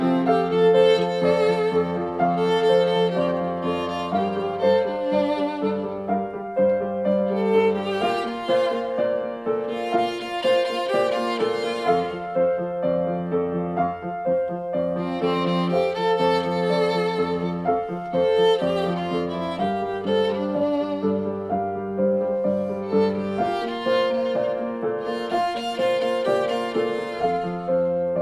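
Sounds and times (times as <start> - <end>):
piano: 0.0 - 28.2
violin: 0.0 - 28.2.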